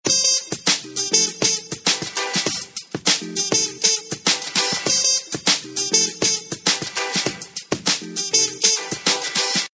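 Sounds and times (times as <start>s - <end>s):
retro beat: 0.0s - 9.7s.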